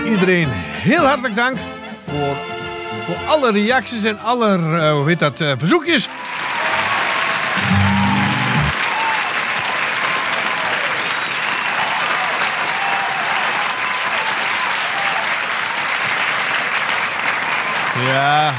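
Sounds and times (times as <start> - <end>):
speech: 0.2 - 6.3
large crowd applause: 6.1 - 18.5.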